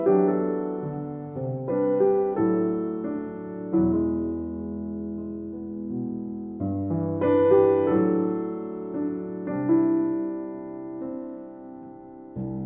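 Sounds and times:
solo piano piece: 0.0 - 12.6.

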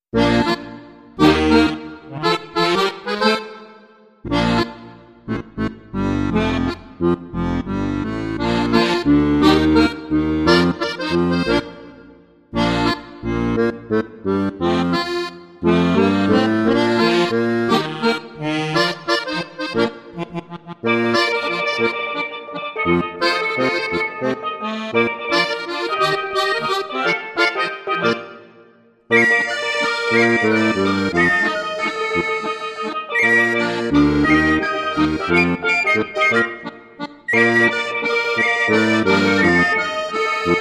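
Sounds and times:
Bavarian calypso music without beat: 0.0 - 40.6.

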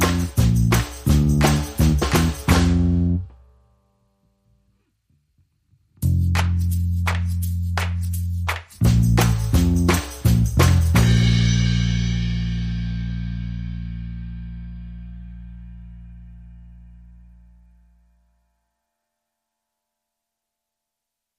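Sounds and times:
drums and percussion: 0.0 - 3.0, 6.0 - 13.3
bass: 0.0 - 18.6.

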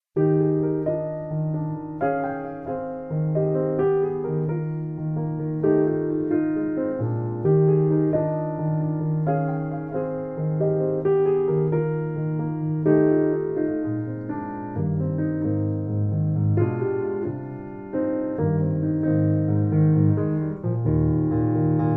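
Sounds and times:
solo piano: 0.0 - 21.9.

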